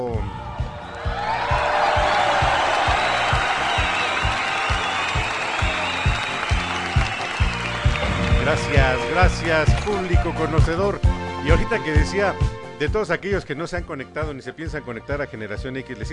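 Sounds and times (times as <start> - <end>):
audience applause: 0.7 - 10.0
speech: 8.7 - 16.1.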